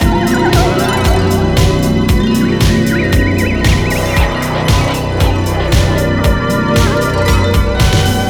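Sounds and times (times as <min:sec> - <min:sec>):
spooky breakdown music: 0:00.0 - 0:08.2.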